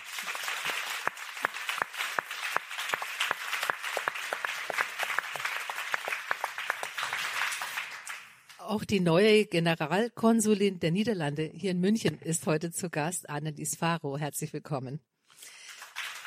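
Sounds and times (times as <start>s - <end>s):
audience applause: 0.0s - 8.4s, 15.4s - 16.2s
speech: 8.7s - 15.1s.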